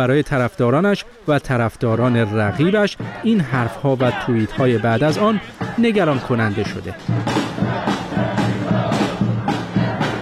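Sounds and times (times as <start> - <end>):
speech: 0.0 - 7.7
crowd of Biden supporters shouting in New York: 0.0 - 10.2.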